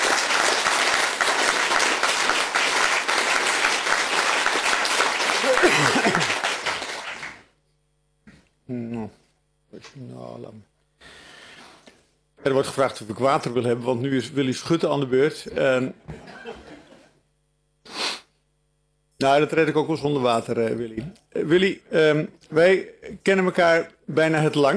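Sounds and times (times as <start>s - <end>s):
sustained applause from a sizeable audience: 0.0s - 7.5s
laughter: 5.3s - 6.8s, 16.1s - 17.2s
speech: 9.8s - 10.8s, 12.4s - 16.3s, 19.2s - 24.7s.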